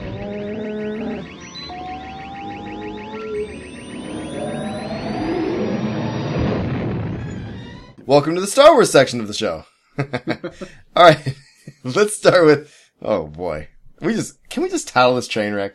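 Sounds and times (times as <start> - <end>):
hyperspace jump to light speed sound effect: 0.0 - 8.0
speech: 8.1 - 15.7.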